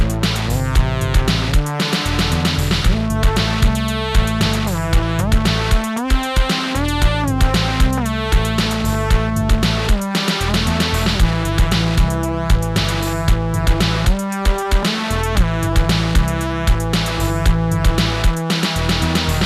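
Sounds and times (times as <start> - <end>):
distorted Moog synthesizer: 0.0 - 19.4
drums playing: 0.0 - 19.4.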